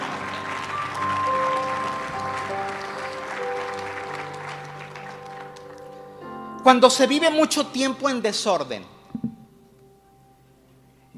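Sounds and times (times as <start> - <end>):
audience applause: 0.0 - 6.2
speech: 6.6 - 9.0.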